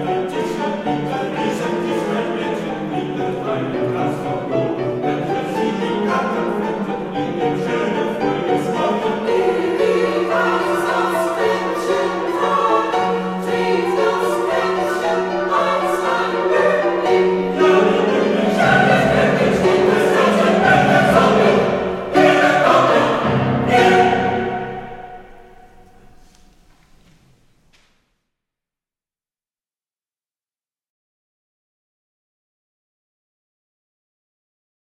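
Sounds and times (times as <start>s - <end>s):
choral songs: 0.0s - 26.4s
piano: 0.0s - 27.9s.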